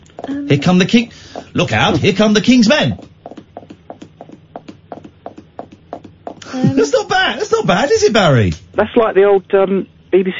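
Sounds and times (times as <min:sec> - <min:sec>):
fingers drumming on a chair arm: 0:00.0 - 0:07.5
speech: 0:00.3 - 0:03.1, 0:07.6 - 0:10.3.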